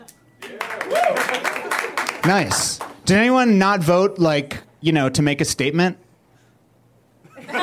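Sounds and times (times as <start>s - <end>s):
audience clapping: 0.4s - 3.2s
person whooping: 0.8s - 1.4s
speech: 2.2s - 6.0s
laughter: 7.2s - 7.6s.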